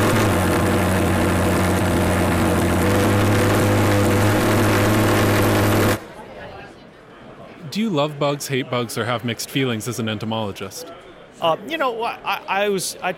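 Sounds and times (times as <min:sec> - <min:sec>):
Golden Eagle mosquito fogger running: 0:00.0 - 0:06.1
speech: 0:07.8 - 0:13.1.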